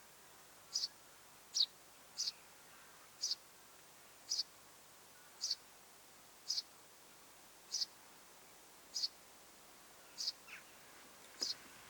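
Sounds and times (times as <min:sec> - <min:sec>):
quiet hiss: 0:00.0 - 0:11.8
Eurasian tree sparrow chirps: 0:00.7 - 0:02.4, 0:03.2 - 0:03.4, 0:04.3 - 0:04.5, 0:05.4 - 0:05.6, 0:06.5 - 0:06.7, 0:07.7 - 0:08.0, 0:08.9 - 0:09.2, 0:10.1 - 0:10.7, 0:11.4 - 0:11.6.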